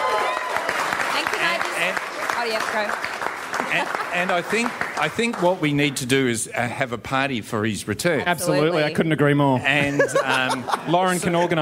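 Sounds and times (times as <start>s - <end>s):
audience applause: 0.0s - 6.3s
speech: 1.8s - 11.5s
laughter: 3.6s - 4.7s, 9.7s - 11.5s.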